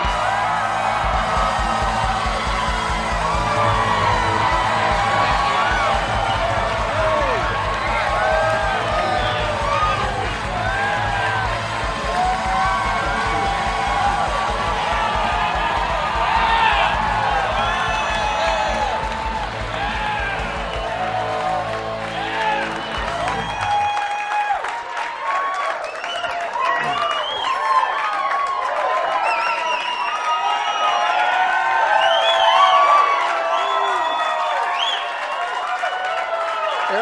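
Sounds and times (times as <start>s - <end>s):
audience cheering and applauding to welcome Aaron Rodgers on Packers Live: 0.0s - 36.9s.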